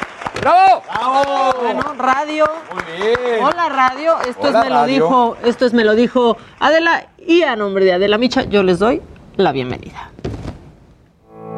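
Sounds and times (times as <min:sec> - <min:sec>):
applause: 0:00.0 - 0:06.6
speech: 0:00.4 - 0:10.2.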